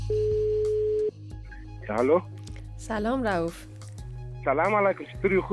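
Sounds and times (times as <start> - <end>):
electronic ringback tone of an outgoing call: 0.1 - 1.1
speech: 1.9 - 3.7, 4.5 - 5.5.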